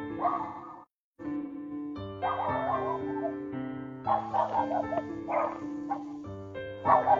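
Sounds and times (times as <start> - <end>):
dog barking: 0.1 - 0.9, 2.2 - 3.4, 4.1 - 7.1.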